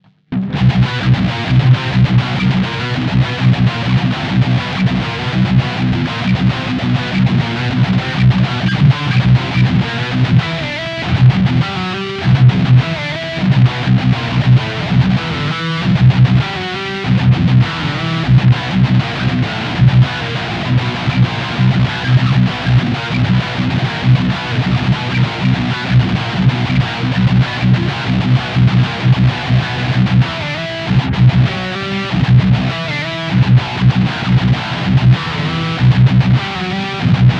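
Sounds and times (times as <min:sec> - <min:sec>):
electric guitar on both pickups at full drive: 0:00.0 - 0:37.3.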